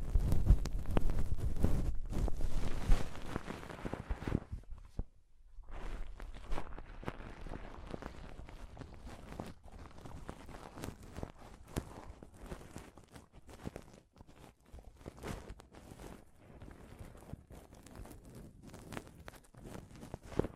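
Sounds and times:
heavy rubbing on a close-up mic with deep thumps: 0:00.0 - 0:08.1
crackly scratching on a close-up mic: 0:00.0 - 0:20.5.

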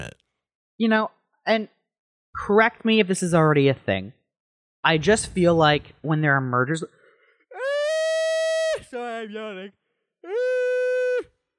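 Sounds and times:
speech: 0:00.0 - 0:00.2, 0:00.8 - 0:01.8, 0:02.4 - 0:04.2, 0:04.8 - 0:07.0, 0:08.9 - 0:10.5
person yawning: 0:07.5 - 0:08.1, 0:10.2 - 0:11.2.

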